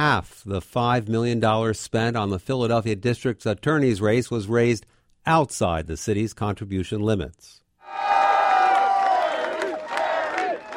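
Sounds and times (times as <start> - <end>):
speech: 0.0 - 8.1
cheering crowd at a victory party: 7.8 - 10.7.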